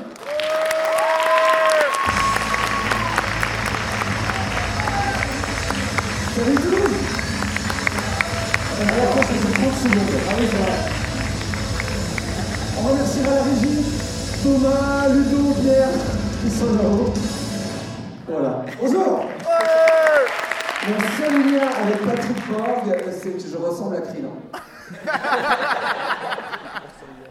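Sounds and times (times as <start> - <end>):
audience applause: 0.0 - 14.6, 19.2 - 23.3
laughter: 2.9 - 13.6, 24.5 - 27.2
speech: 9.0 - 11.0, 12.8 - 17.4, 18.3 - 19.9, 20.9 - 24.5.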